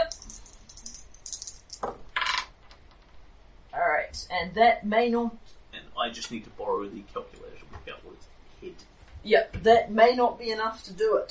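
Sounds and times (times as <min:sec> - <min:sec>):
dice rolled for damage in a tabletop role-playing game: 0:00.0 - 0:03.1
speech: 0:04.4 - 0:05.4, 0:06.0 - 0:07.2, 0:08.2 - 0:11.2.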